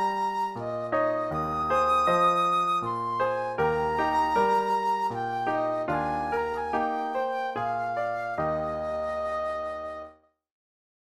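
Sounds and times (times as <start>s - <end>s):
flute playing a lullaby: 0.0s - 10.2s.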